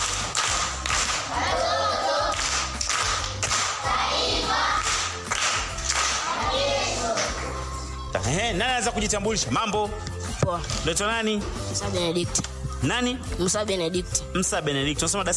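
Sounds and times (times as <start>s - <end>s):
patterned group clapping in a school class: 0.0s - 7.8s
speech: 8.3s - 15.3s.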